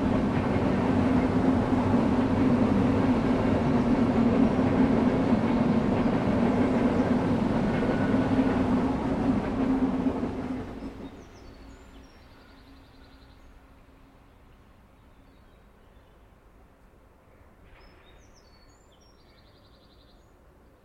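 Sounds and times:
old-fashioned locomotive rumbling: 0.0 - 12.0.

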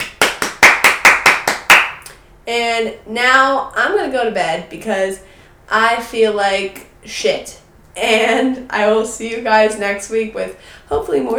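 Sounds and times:
hand clapping: 0.0 - 2.2
speech: 2.5 - 11.3.

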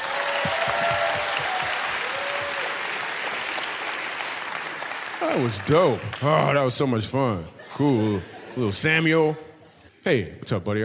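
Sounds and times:
whoops and cheers: 0.0 - 3.2
audience applause: 0.0 - 6.8
speech: 5.2 - 10.8.

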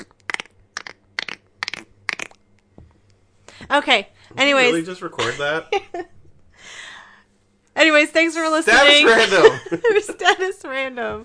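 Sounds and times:
mouth clicks imitating a horse trotting: 0.0 - 2.4
speech: 3.7 - 6.1, 7.8 - 11.2
laughter: 5.2 - 6.1, 8.7 - 10.6.

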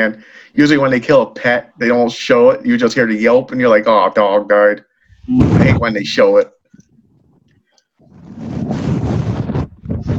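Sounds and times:
speech: 0.0 - 6.6
microphone falling over: 5.1 - 5.9, 8.1 - 10.1.

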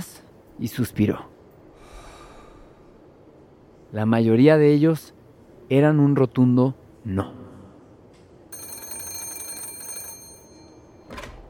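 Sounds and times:
speech: 0.0 - 1.3, 3.9 - 7.4
telephone bell ringing: 8.5 - 11.4.

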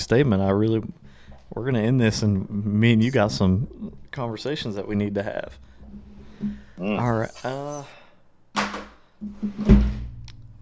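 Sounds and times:
speech: 0.0 - 8.0, 8.6 - 10.0
drawer scraping along its runners and slamming shut: 9.5 - 10.1.

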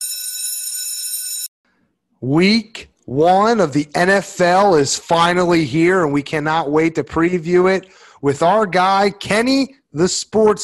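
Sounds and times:
bell ringing: 0.0 - 1.5
speech: 2.2 - 10.6.

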